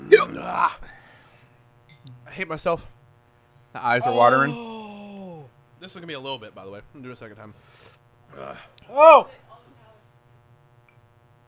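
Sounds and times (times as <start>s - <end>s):
person hiccuping: 0.0s - 0.8s
speech: 0.1s - 1.0s, 2.0s - 3.0s, 3.7s - 4.8s, 5.8s - 9.4s.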